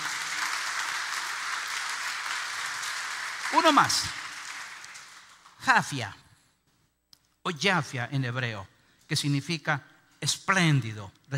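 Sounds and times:
audience applause: 0.0 - 5.6
speech: 3.5 - 4.2, 5.6 - 6.2, 7.4 - 11.3.

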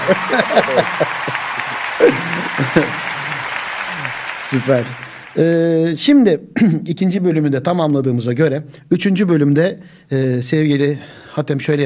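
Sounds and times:
speech: 0.0 - 3.1, 4.0 - 11.8
laughter: 0.0 - 5.4
applause: 0.0 - 6.2.

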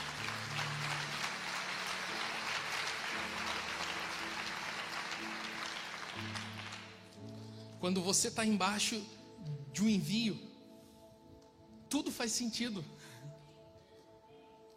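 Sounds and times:
audience applause: 0.0 - 7.2
speech: 7.8 - 9.2, 9.8 - 10.5, 11.9 - 13.1.

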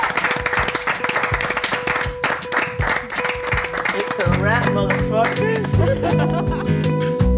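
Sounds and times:
audience applause: 0.0 - 5.8
laughter: 4.3 - 7.2
speech: 4.7 - 6.8.

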